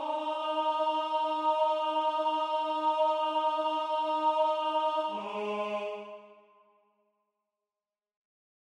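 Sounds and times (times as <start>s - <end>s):
tenor part of SATB choir singing: 0.0s - 6.4s.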